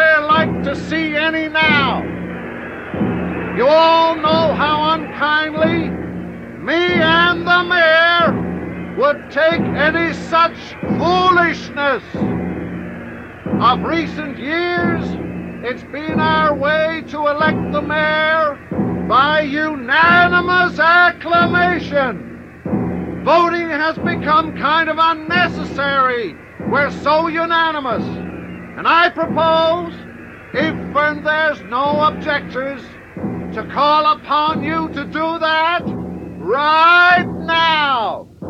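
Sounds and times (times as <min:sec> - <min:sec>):
crowd noise: 0:00.0 - 0:38.4.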